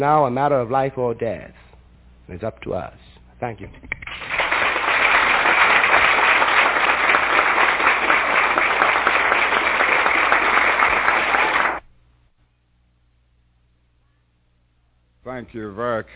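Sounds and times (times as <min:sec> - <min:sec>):
speech: 0:00.0 - 0:01.6, 0:02.3 - 0:04.0, 0:15.4 - 0:16.1
audience applause: 0:04.0 - 0:11.8.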